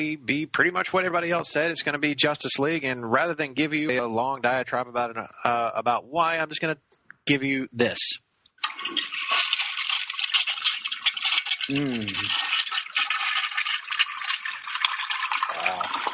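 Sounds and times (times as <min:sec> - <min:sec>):
speech: 0:00.0 - 0:09.2, 0:11.7 - 0:12.4
toilet flushing: 0:08.6 - 0:16.1.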